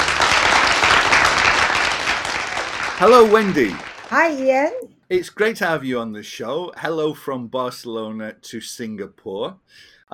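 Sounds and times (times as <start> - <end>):
audience applause welcoming a guest onto a show: 0.0 - 4.5
speech: 3.0 - 10.1.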